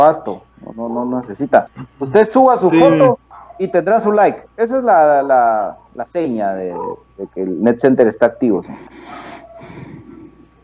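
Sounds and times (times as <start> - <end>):
speech: 0.0 - 9.9
heavy breathing into a microphone: 8.7 - 10.5.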